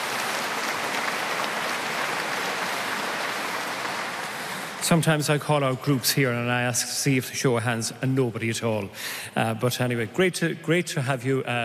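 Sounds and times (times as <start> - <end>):
audience applause at the Knock shrine welcoming a group from Philadelphia: 0.0 - 5.3
speech: 4.9 - 11.6.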